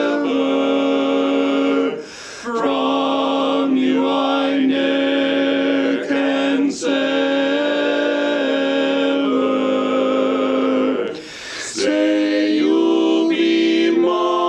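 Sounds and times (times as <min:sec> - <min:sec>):
tenor in a barbershop quartet singing: 0:00.0 - 0:14.4.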